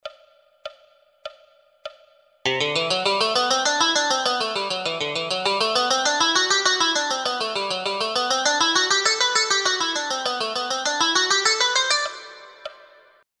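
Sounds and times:
scales played on three strings: 0:02.5 - 0:13.0.

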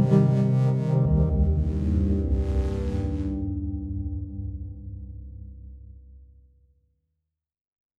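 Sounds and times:
Buchla synthesizer pad playing: 0:00.0 - 0:05.4.

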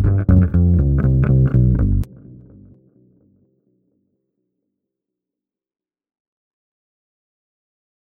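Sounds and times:
bass: 0:00.0 - 0:03.4.

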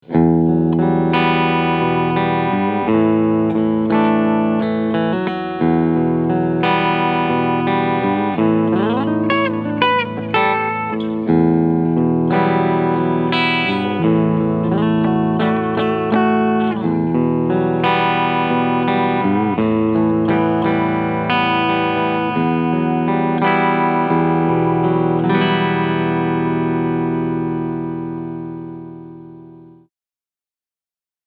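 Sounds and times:
PRS SE Hollowbody II clean guitar sound on bridge humbucker: 0:00.0 - 0:29.9.

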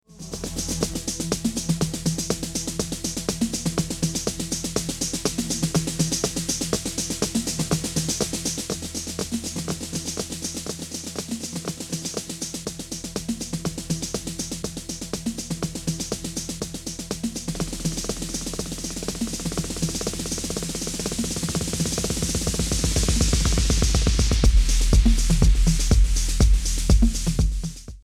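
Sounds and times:
music loop: 0:00.2 - 0:28.0.

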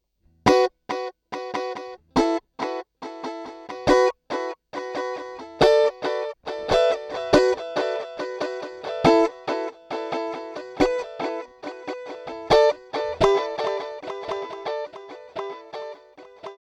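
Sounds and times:
guitar: 0:00.3 - 0:16.6.

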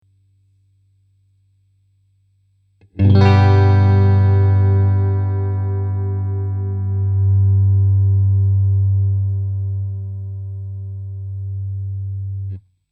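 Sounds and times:
low guitar: 0:02.8 - 0:12.6.

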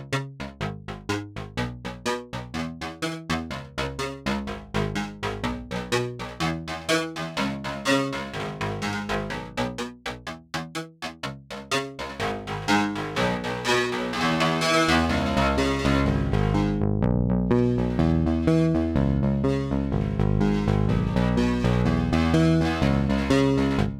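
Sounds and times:
modular synthesizer plonk bass: 0:00.0 - 0:23.9.

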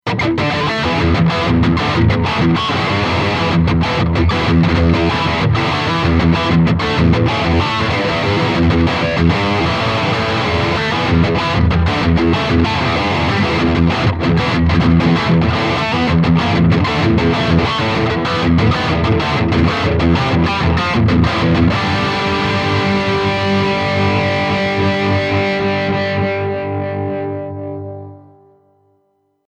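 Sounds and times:
high gain distortion: 0:00.1 - 0:28.1.

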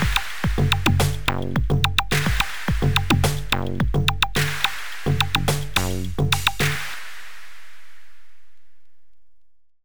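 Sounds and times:
drum downbeat: 0:00.0 - 0:07.4.

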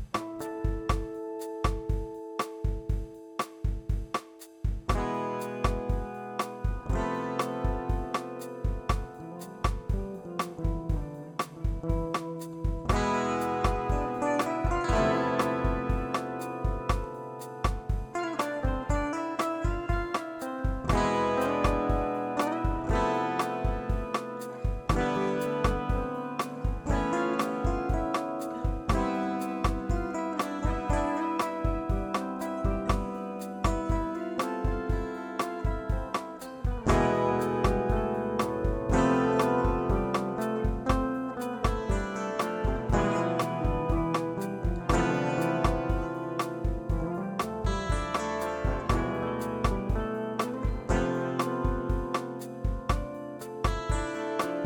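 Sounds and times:
bossa nova guitar through Zoom G11: 0:00.1 - 0:54.6.

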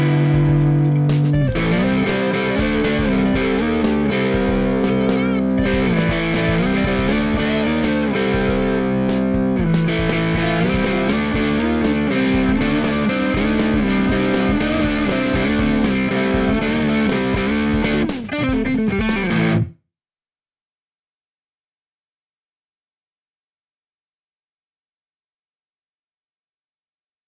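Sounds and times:
Hagstrom Ultra Max Special electric guitar neck pickup crunch tone: 0:00.0 - 0:19.7.

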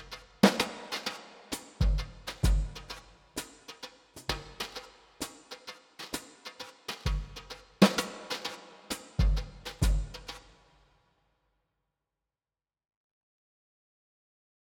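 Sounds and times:
plate drums with clean mix and four-second decay: 0:00.0 - 0:10.7.

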